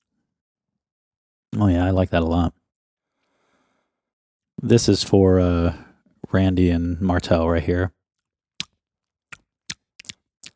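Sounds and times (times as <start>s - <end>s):
speech: 1.6s - 2.6s, 4.6s - 8.0s
mouth smacking while chewing and tasting bourbon: 9.3s - 10.5s.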